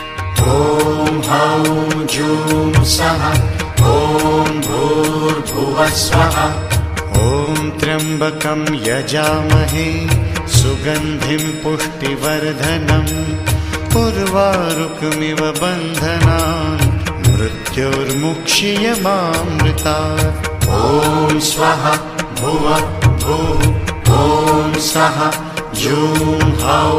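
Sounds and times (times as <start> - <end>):
mantra chanting: 0.4 - 13.4, 14.0 - 26.9.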